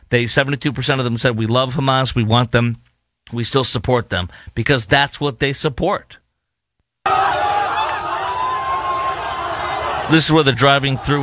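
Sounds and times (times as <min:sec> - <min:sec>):
speech: 0:00.1 - 0:06.2, 0:10.1 - 0:11.2
crowd screaming and cheering: 0:07.0 - 0:11.2.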